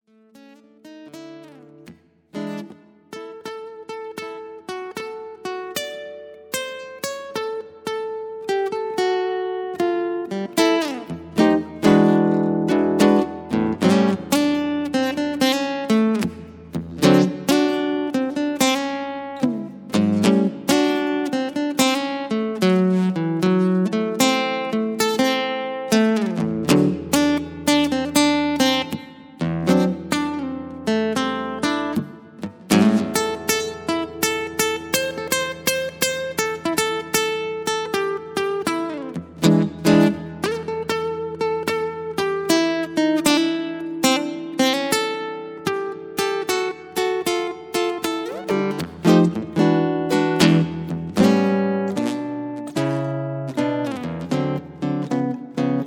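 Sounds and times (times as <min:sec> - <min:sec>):
blues music in A: 0:00.1 - 0:55.8.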